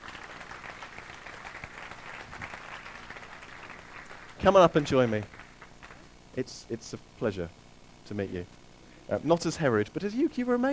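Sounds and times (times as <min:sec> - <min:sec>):
audience applause: 0:00.0 - 0:06.1
speech: 0:04.4 - 0:05.4, 0:06.4 - 0:10.7.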